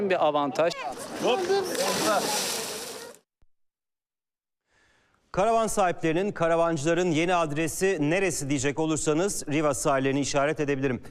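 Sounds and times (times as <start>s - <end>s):
speech: 0.0s - 2.5s, 5.3s - 11.0s
sea water splashing as people swim in the Bosphorus on a hot day: 0.9s - 3.2s.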